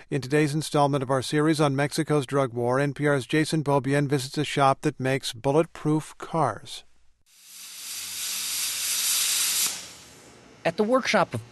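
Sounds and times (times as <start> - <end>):
speech: 0.1 - 6.9, 10.6 - 11.5
torch cutting ballistic steel plates: 7.3 - 10.4.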